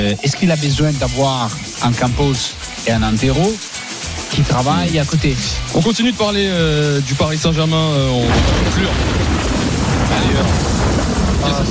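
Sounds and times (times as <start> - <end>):
speech: 0.1 - 3.7, 4.3 - 9.5, 11.4 - 11.7
thunderstorm sound effect: 8.2 - 11.7.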